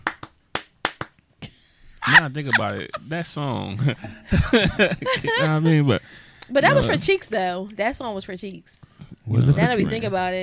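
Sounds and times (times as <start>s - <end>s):
hand clap: 0.0s - 1.2s
laughter: 2.0s - 6.0s, 6.6s - 7.1s
speech: 2.1s - 10.4s.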